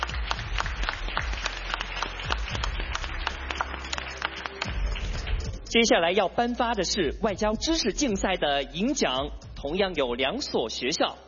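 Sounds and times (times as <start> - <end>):
audience applause: 0.0 - 5.6
speech: 5.7 - 11.2.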